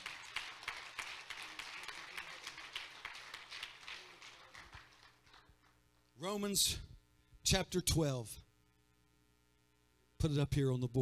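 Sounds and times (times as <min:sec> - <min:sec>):
audience clapping hands: 0:00.0 - 0:06.0
speech: 0:06.2 - 0:06.9, 0:07.5 - 0:08.4, 0:10.2 - 0:11.0.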